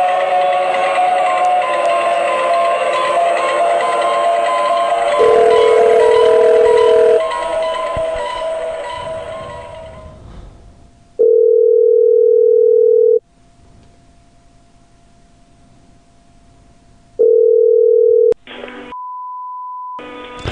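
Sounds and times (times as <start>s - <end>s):
noisy crackle: 0.0s - 12.2s, 13.0s - 17.2s
low-pitched telephone tone: 4.8s - 8.6s, 11.2s - 13.2s, 17.2s - 20.0s
higher-pitched telephone tone: 5.2s - 7.2s, 11.2s - 13.2s, 17.2s - 18.4s.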